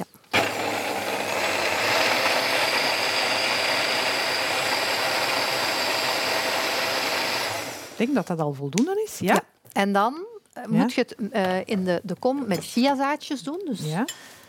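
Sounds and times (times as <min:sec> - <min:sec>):
kitchen blender blending ingredients: 0:00.0 - 0:08.2
speech: 0:08.0 - 0:14.4.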